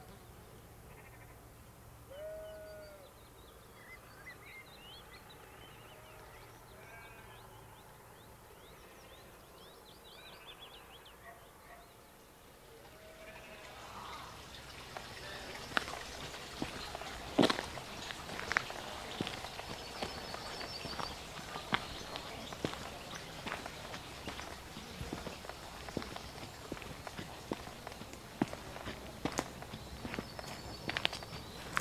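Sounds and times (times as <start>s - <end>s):
walking soundscape: 12.8s - 31.7s.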